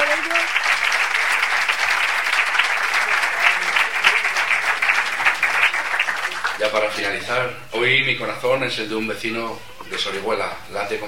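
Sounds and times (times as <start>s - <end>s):
audience applause at the town festivities in Orihuela, Spain: 0.0s - 7.3s
speech: 6.7s - 11.0s.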